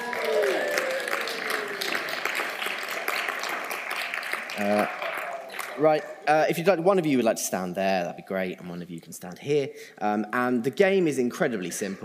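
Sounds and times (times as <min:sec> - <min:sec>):
audience clapping and cheering for two adult volunteers: 0:00.0 - 0:06.4
speech: 0:04.6 - 0:05.0, 0:05.8 - 0:12.0.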